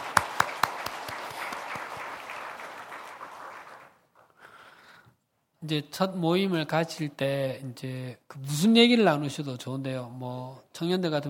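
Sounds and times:
crowd applause: 0:00.0 - 0:04.0
speech: 0:05.6 - 0:11.2.

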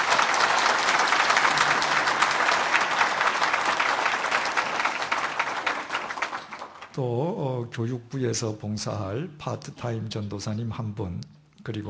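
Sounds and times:
church congregation applause welcoming new ministers: 0:00.0 - 0:07.0
speech: 0:07.0 - 0:11.8.

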